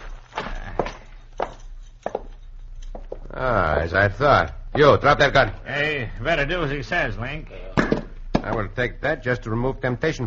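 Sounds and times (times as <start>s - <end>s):
heavy footsteps on a hard floor walking into a cabin: 0.0s - 3.3s
low steady hum: 0.0s - 10.2s
speech: 3.4s - 7.7s, 8.4s - 10.2s.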